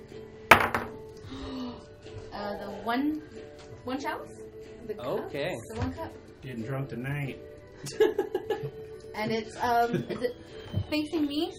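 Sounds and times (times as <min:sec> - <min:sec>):
die clattering onto a hard tabletop: 0:00.5 - 0:01.0
speech: 0:02.4 - 0:11.5
laughter: 0:07.8 - 0:08.8.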